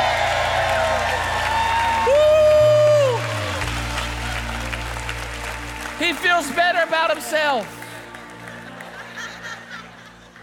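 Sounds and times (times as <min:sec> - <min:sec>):
sustained high-pitched whoop: 0:00.0 - 0:03.6
crowd clapping and cheering: 0:00.0 - 0:10.4
speech: 0:06.4 - 0:07.8
laughter: 0:08.7 - 0:10.4.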